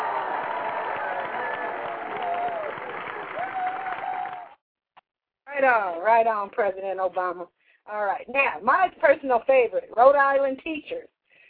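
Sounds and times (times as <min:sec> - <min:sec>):
crowd applauding: 0:00.0 - 0:04.6
whoops and cheers: 0:00.0 - 0:04.6
speech: 0:05.6 - 0:11.1.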